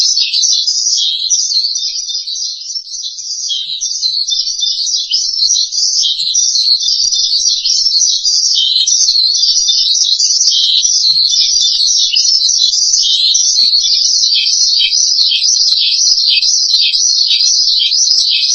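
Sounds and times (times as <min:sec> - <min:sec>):
starling singing twittering warbles: 0:00.0 - 0:18.5.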